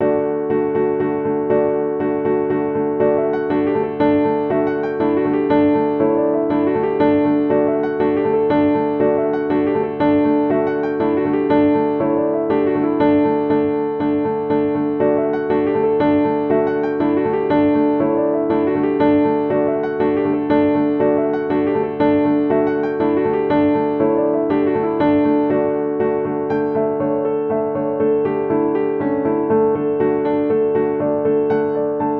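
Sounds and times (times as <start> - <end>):
piano dance piece in D: 0.0 - 32.1.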